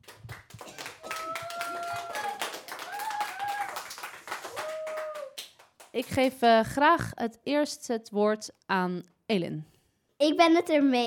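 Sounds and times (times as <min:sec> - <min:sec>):
audience applause: 0:00.0 - 0:05.6
speech: 0:06.0 - 0:11.0.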